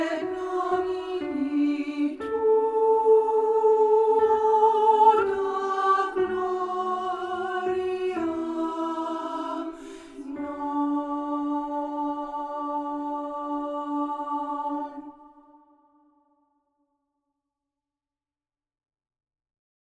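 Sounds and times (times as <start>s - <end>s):
soprano voice: 0.0s - 15.5s.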